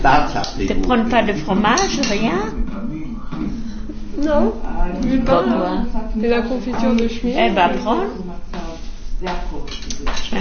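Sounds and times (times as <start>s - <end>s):
speech: 0.0s - 3.5s, 4.2s - 8.3s, 9.2s - 10.4s
spoons and dishes clinking at a table during a meal: 1.7s - 2.3s.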